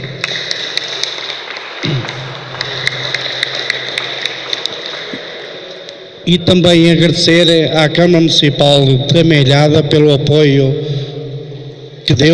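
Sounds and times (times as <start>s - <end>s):
audience applause: 0.0s - 5.7s
speech: 6.3s - 10.9s, 12.1s - 12.3s.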